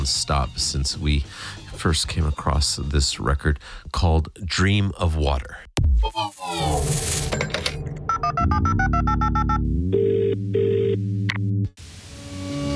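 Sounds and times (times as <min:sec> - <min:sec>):
speech: 0:00.0 - 0:07.7, 0:08.3 - 0:11.2
telephone ringing in rapid electronic pulses: 0:07.5 - 0:11.0
two steady beep tones: 0:08.1 - 0:11.0.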